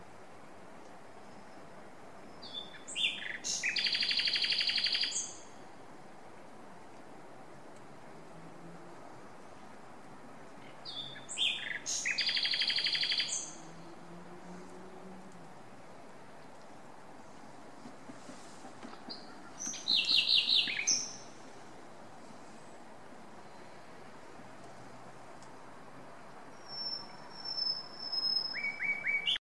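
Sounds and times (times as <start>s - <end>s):
common nightingale singing: 2.3s - 5.6s, 10.6s - 13.7s, 19.0s - 21.4s, 26.5s - 29.4s.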